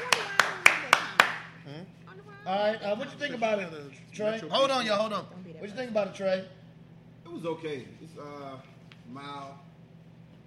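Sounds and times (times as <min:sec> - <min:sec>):
sharp hand claps: 0:00.0 - 0:01.5
speech: 0:02.5 - 0:06.6, 0:07.3 - 0:09.6.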